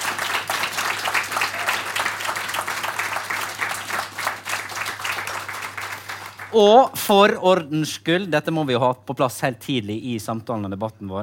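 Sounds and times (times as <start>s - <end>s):
audience applause: 0.0s - 6.6s
speech: 6.5s - 11.2s.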